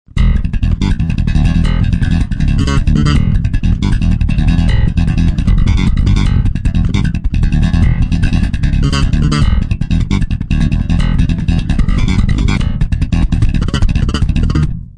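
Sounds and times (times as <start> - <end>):
slap bass: 0.1 - 14.9.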